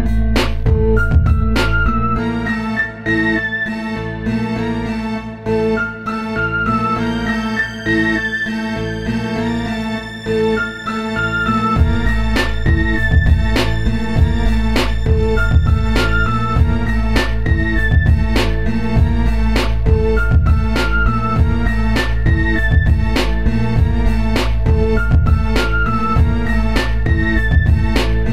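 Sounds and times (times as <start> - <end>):
spatial 3D bass: 0.0 - 28.3.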